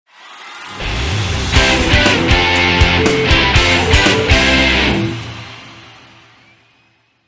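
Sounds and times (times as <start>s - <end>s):
guitar: 0.8s - 6.5s.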